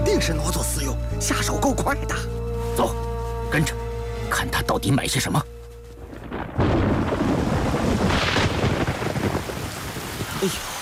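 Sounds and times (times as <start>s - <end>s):
speech: 0.2s - 5.5s, 10.4s - 10.7s
rain: 5.9s - 10.7s
thunder: 6.0s - 10.4s.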